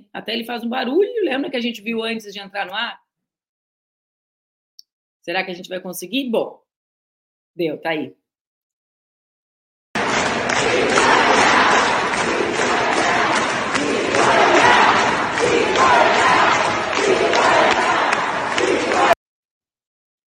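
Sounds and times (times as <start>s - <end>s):
speech: 0.2s - 3.0s, 5.2s - 6.6s, 7.6s - 8.2s
protest crowd chanting: 10.0s - 19.2s
scattered shouts: 10.0s - 19.2s.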